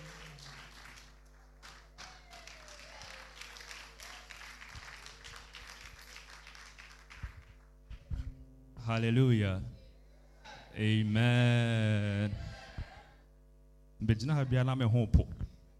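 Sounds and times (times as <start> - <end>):
audience clapping: 0.0 - 8.1
speech: 8.9 - 9.8, 10.8 - 12.4, 14.0 - 15.3.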